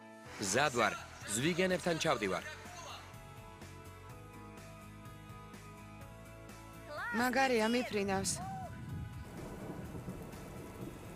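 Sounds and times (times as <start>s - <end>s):
speech: 0.4s - 2.6s, 7.2s - 8.5s
heavy tropical rain pouring: 8.4s - 11.1s.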